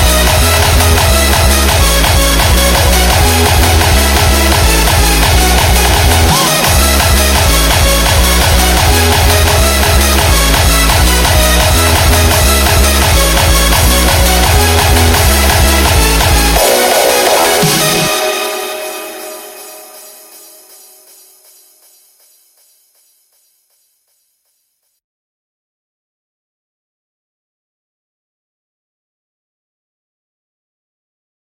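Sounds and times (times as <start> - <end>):
hardstyle remix: 0.0 - 22.5.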